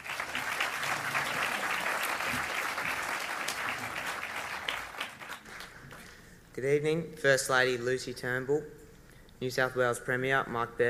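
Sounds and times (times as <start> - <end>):
audience applause at a formal evening event welcoming a speaker: 0.0 - 6.0
speech: 6.6 - 8.8, 9.4 - 10.8.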